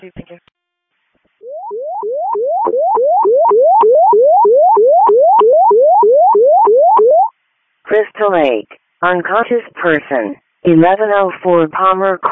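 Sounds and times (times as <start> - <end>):
fire dispatch alert tones: 1.4 - 7.3
speech: 8.2 - 12.3.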